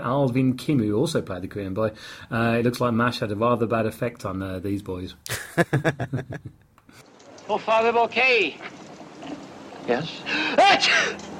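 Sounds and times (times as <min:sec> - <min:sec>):
speech: 0:00.0 - 0:08.9, 0:09.9 - 0:11.3
laughter: 0:05.3 - 0:06.6
person sneezing: 0:10.5 - 0:11.2.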